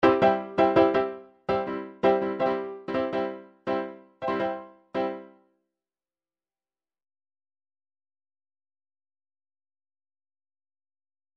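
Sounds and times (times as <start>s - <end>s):
MIDI boogie chord lines: 0.0s - 5.3s.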